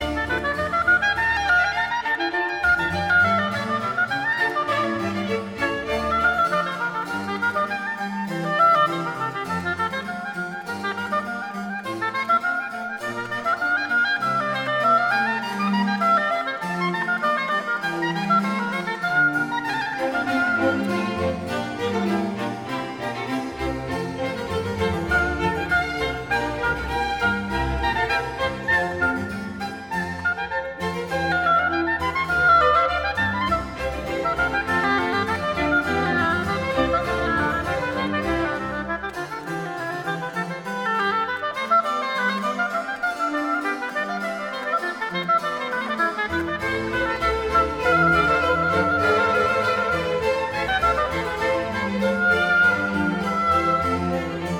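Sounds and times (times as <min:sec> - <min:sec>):
concerto in D minor for oboe, strings and basso continuo: 0:00.0 - 0:54.5.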